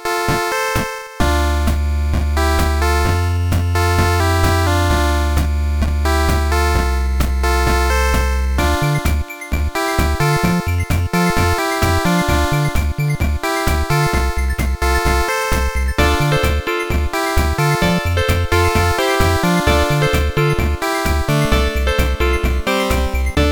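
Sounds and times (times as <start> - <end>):
trance-ish NES VRC7 chip music: 0.3 - 23.5.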